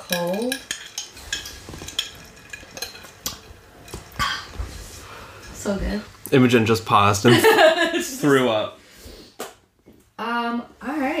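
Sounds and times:
metal straw stirring ice cubes in a glass: 0:00.0 - 0:03.9
low hum: 0:00.0 - 0:11.1
speech: 0:00.1 - 0:00.7, 0:05.7 - 0:08.8.

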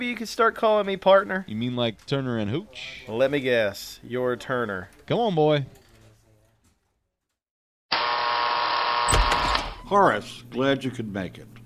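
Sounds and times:
speech: 0:00.0 - 0:05.8, 0:09.9 - 0:11.6
electric door buzzer: 0:07.9 - 0:09.8.

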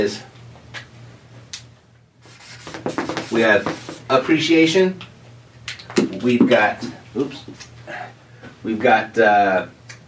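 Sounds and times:
speech: 0:00.0 - 0:00.3, 0:03.3 - 0:05.1, 0:06.2 - 0:09.8
notes written by hand: 0:02.2 - 0:04.1.

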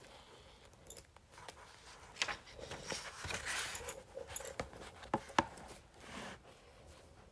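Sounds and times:
facial roller rustling and crinkling over paper: 0:01.4 - 0:07.2.

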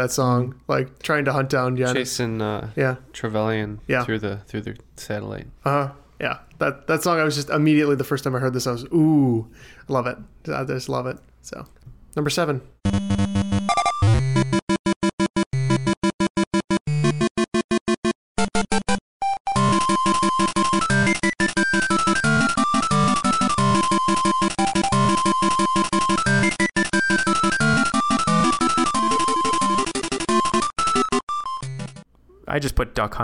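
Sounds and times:
speech: 0:00.0 - 0:13.1, 0:33.0 - 0:33.2
bright bouncy chiptune music: 0:12.8 - 0:32.0.

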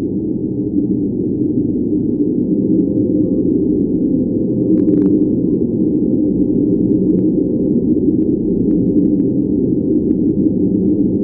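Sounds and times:
deep space wind rendered as low rushing noise: 0:00.0 - 0:11.2
faint crackle: 0:04.6 - 0:05.4, 0:06.4 - 0:11.2.

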